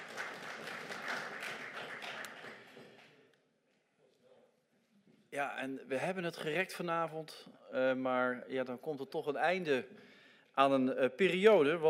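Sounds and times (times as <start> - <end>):
standing ovation applause: 0.0 - 3.2
speech: 5.4 - 11.8.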